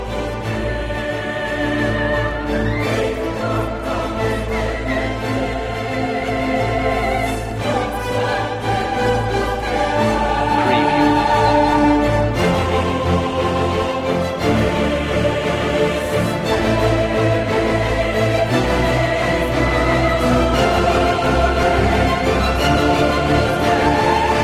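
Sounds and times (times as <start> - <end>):
choir: 0.0 - 24.4
strings: 0.0 - 24.4.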